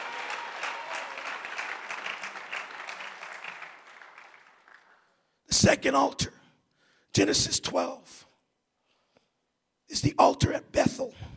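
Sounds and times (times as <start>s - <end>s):
audience hand clapping: 0.0s - 5.2s
speech: 5.6s - 6.4s, 7.2s - 8.3s, 9.9s - 11.3s.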